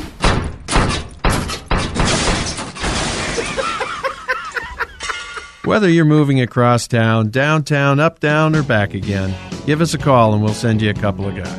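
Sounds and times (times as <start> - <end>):
refrigerator crashing down a flight of stairs: 0.0 - 4.0
laughter: 3.2 - 5.7
speech: 5.7 - 11.5.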